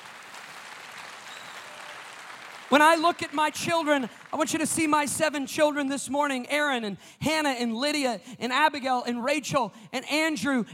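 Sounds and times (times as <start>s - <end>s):
audience applause: 0.0s - 4.5s
speech: 2.7s - 10.7s.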